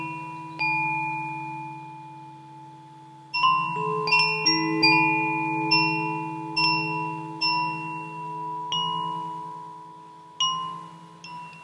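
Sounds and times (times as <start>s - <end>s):
fūrin wind chime ringing: 0.0s - 11.6s
low steady hum: 0.0s - 11.6s.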